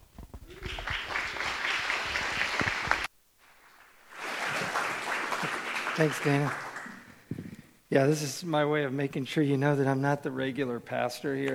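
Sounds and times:
audience applause welcoming a speaker: 0.5 - 3.1, 3.7 - 7.3
speech: 6.0 - 6.6, 7.9 - 11.5.

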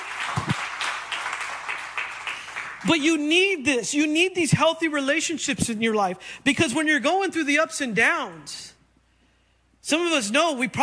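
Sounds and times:
audience clapping: 0.0 - 3.0
speech: 2.8 - 8.7, 9.9 - 10.8.

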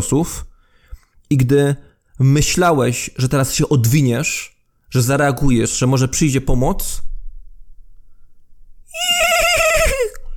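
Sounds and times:
speech: 0.0 - 0.5, 1.3 - 7.1, 9.0 - 9.5
rearing horse whinnying: 8.9 - 10.2.

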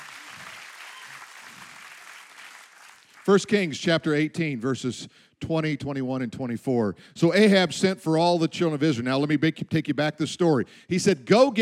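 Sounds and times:
crowd applauding: 0.0 - 3.4
speech: 3.2 - 11.5.

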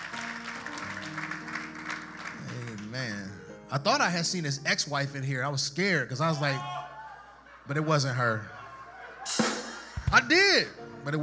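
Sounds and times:
audience clapping: 0.0 - 3.6
speech: 3.7 - 6.8, 7.7 - 8.6, 10.1 - 11.2
laughter: 6.4 - 10.3.

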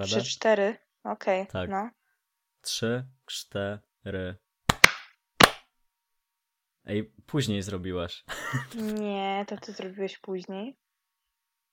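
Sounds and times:
speech: 0.0 - 2.0, 2.6 - 4.4, 6.9 - 10.8
hand claps for sync: 4.7 - 5.7.

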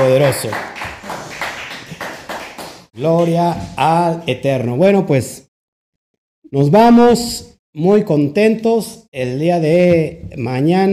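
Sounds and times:
audience applause: 0.0 - 2.9
speech: 0.2 - 0.7, 3.0 - 5.4, 6.5 - 10.9.

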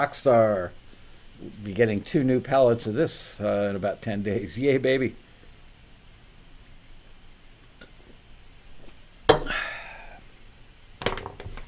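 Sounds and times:
speech: 0.0 - 0.8, 1.4 - 5.2
burp after drinking Rockstar energy drink: 9.3 - 10.1.

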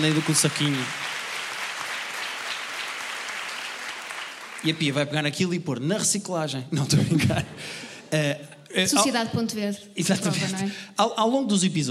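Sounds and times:
speech: 0.0 - 1.2, 4.6 - 11.9
audience applause: 0.0 - 5.3
laughter: 6.8 - 8.0.

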